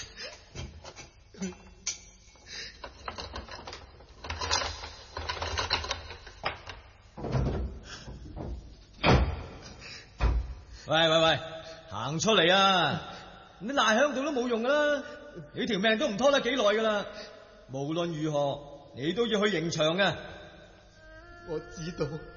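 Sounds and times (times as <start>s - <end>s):
cell door being unlocked and opened with metallic clanks and rattles: 0.0s - 10.5s
speech: 1.4s - 1.6s, 10.9s - 20.3s, 21.5s - 22.3s.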